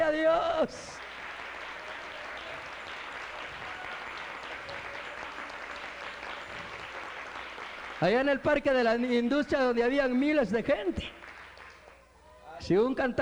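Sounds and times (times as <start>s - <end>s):
speech: 0.6s - 1.0s, 8.0s - 11.3s, 12.6s - 13.2s
loud audience applause: 0.7s - 8.4s, 11.1s - 12.6s.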